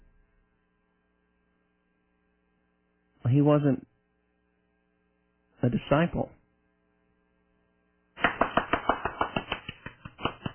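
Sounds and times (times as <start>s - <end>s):
speech: 3.2s - 3.9s, 5.6s - 6.4s
hand clapping: 8.2s - 10.5s.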